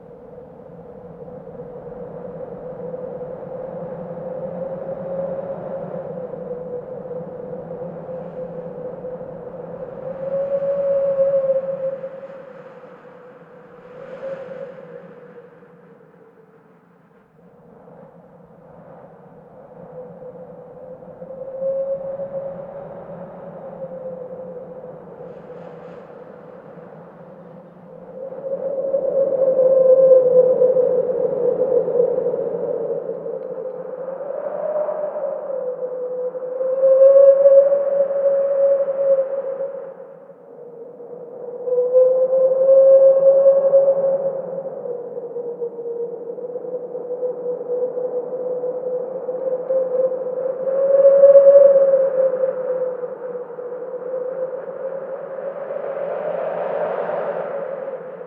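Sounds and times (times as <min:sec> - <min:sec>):
howling wind: 0:00.0 - 0:58.2.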